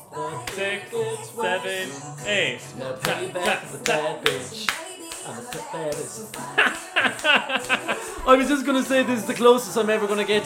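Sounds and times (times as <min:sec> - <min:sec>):
speech: 0:00.2 - 0:04.7, 0:05.3 - 0:10.4
group hand clapping in double time: 0:00.4 - 0:00.9, 0:03.0 - 0:09.1
laughter: 0:06.0 - 0:10.2.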